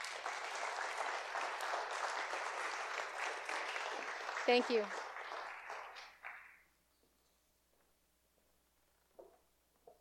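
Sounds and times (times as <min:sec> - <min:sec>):
crowd applauding: 0:00.0 - 0:06.7
speech: 0:04.5 - 0:05.0.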